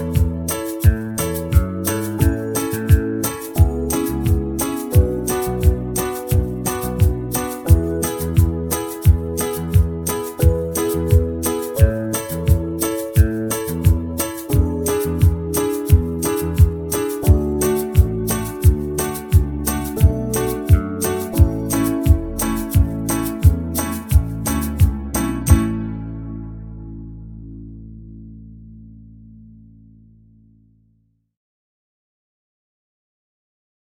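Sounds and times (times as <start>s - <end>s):
slow banjo backing track: 0.0s - 26.0s.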